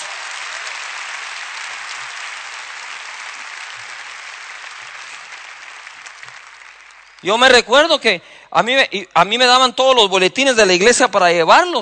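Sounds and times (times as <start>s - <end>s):
audience applause: 0.0s - 7.6s
speech: 7.2s - 11.7s.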